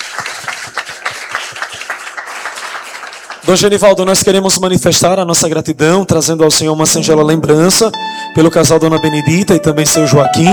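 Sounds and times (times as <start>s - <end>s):
audience applause: 0.0s - 3.6s
speech: 3.5s - 10.5s.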